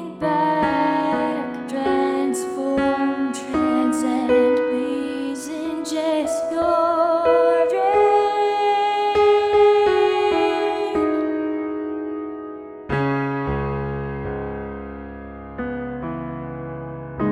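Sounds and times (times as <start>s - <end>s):
piano in 17-tone equal temperament: 0.0s - 17.3s.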